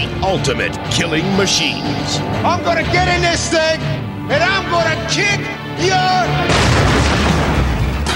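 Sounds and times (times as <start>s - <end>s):
speech: 0.2s - 6.9s
loud booming trailer explosion sound effect: 6.5s - 8.0s.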